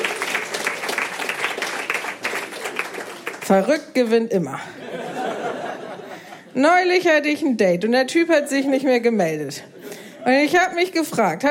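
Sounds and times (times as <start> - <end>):
audience clapping to vote: 0.0 - 3.8
speech: 3.5 - 4.9, 6.6 - 11.4
laughter: 4.7 - 6.6.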